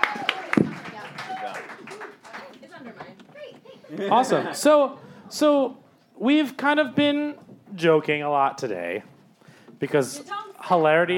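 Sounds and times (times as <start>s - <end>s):
audience applause: 0.0s - 2.9s
speech: 3.9s - 9.1s, 9.8s - 11.1s.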